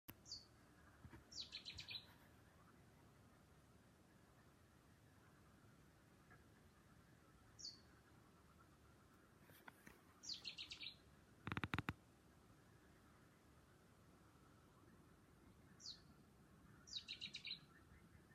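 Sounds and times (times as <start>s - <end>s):
bird calling at night with high rapid chirping notes: 0.1s - 2.8s, 7.5s - 9.0s, 9.6s - 11.9s, 14.7s - 18.3s.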